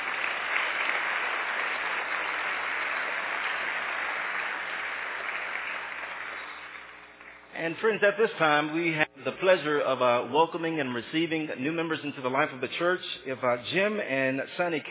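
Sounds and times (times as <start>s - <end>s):
audience applause: 0.0s - 7.4s
speech: 7.6s - 14.8s.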